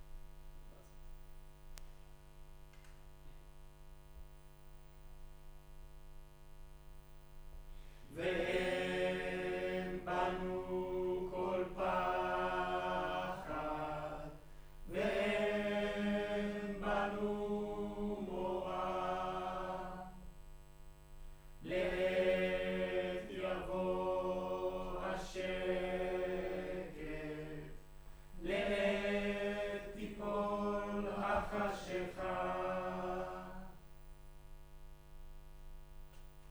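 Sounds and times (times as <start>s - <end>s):
choir singing in room: 8.1s - 20.3s, 21.6s - 27.8s, 28.4s - 33.8s.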